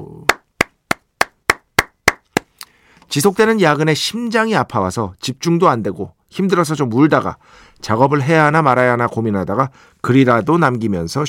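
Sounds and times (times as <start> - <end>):
hands clapping: 0.3 - 2.6
speech: 3.1 - 11.2.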